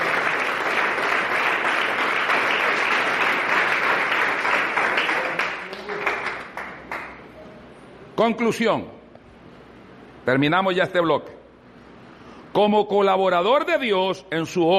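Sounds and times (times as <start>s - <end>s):
audience applause: 0.0s - 7.2s
speech: 8.2s - 9.0s, 10.3s - 11.3s, 12.6s - 14.7s.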